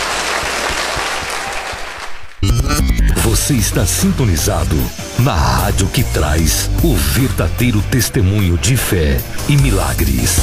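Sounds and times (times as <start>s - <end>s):
audience applause: 0.0s - 2.4s
speech: 3.4s - 10.4s.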